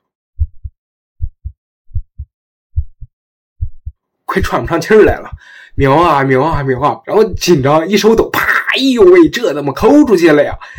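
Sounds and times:
pounding heartbeat sound effect: 0:00.4 - 0:07.6
speech: 0:04.4 - 0:10.7.

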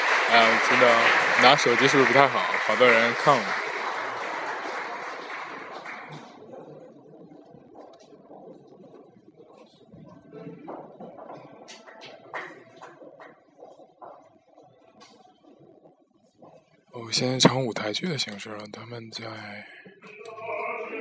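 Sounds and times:
concert hall audience applause: 0:00.0 - 0:07.9, 0:11.0 - 0:13.8
speech: 0:00.3 - 0:03.7, 0:17.2 - 0:19.9.

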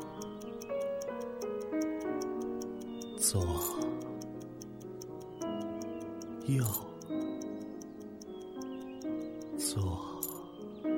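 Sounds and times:
pocket watch ticking: 0:00.0 - 0:10.9
sustained musical tones: 0:00.0 - 0:10.9
speech: 0:03.2 - 0:04.0, 0:06.5 - 0:06.9.

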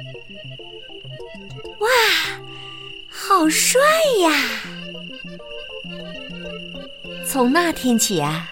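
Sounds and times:
speech: 0:00.0 - 0:02.3, 0:03.3 - 0:04.7, 0:07.3 - 0:08.5
cricket chirping: 0:00.0 - 0:08.5.

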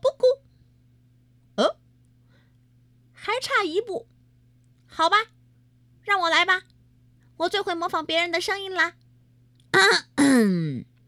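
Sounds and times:
speech: 0:03.4 - 0:04.2, 0:04.9 - 0:05.4, 0:06.1 - 0:06.7, 0:07.4 - 0:09.0, 0:09.7 - 0:10.9
parrot clearing throat: 0:09.8 - 0:10.9.

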